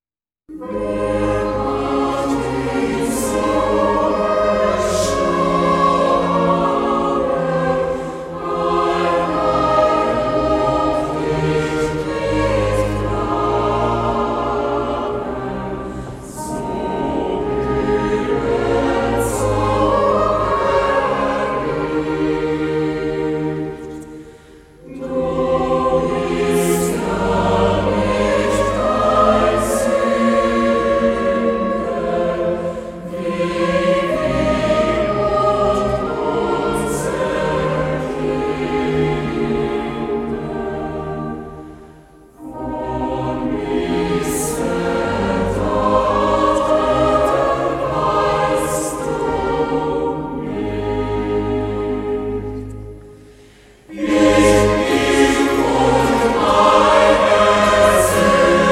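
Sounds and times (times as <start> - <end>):
choir singing: 0.5 - 58.7.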